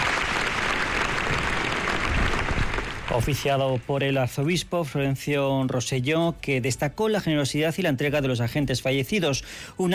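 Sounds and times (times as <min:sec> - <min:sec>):
applause from a large crowd at a funeral in a cathedral: 0:00.0 - 0:04.0
speech: 0:03.1 - 0:09.9.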